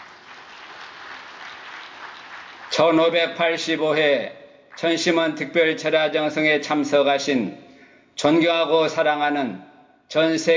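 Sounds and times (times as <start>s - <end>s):
audience applause at an overnight religious vigil: 0.0s - 3.1s
speech: 2.8s - 7.6s, 8.2s - 10.5s.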